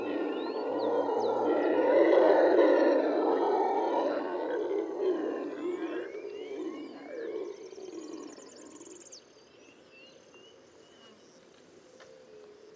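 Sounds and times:
black and gold howler Alouatta caraya howling: 0.0s - 8.5s.

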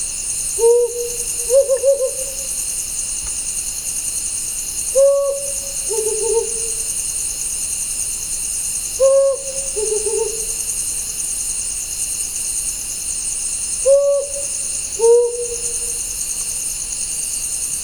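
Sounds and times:
Strix ocellata mottled wood owl calling: 0.6s - 2.5s, 5.0s - 6.9s, 9.0s - 10.6s, 13.8s - 16.0s.

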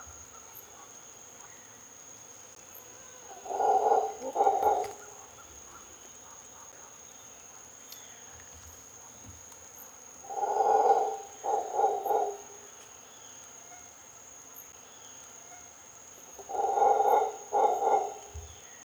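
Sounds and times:
mantled howler Alouatta palliata howling: 2.8s - 5.8s, 10.2s - 12.8s, 16.4s - 18.7s.

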